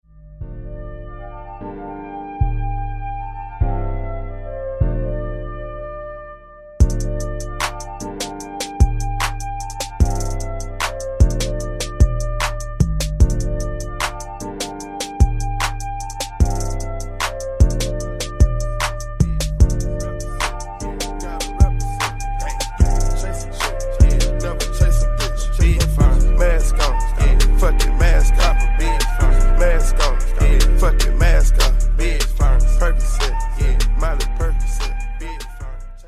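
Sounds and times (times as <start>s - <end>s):
instrumental music: 0.2s - 36.0s.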